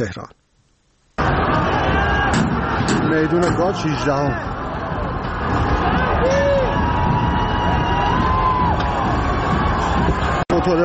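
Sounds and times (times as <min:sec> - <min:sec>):
speech: 0:00.0 - 0:00.4, 0:03.1 - 0:04.6, 0:10.1 - 0:10.8
protest crowd shouting in the street: 0:01.2 - 0:10.8.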